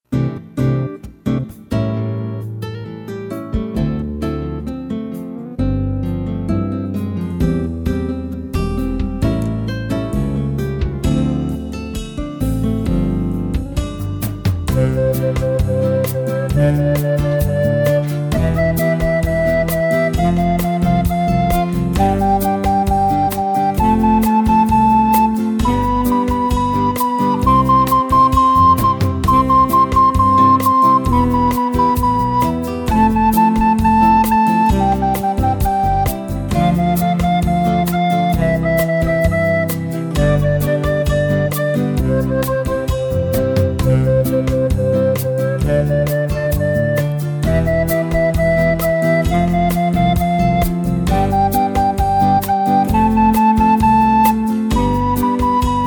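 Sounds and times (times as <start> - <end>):
scale song backing track: 0.0 - 55.8.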